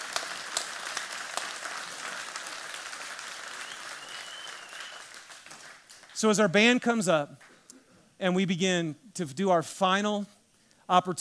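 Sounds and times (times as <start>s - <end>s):
audience applause: 0.0s - 6.2s
speech: 6.2s - 7.5s, 8.2s - 11.1s.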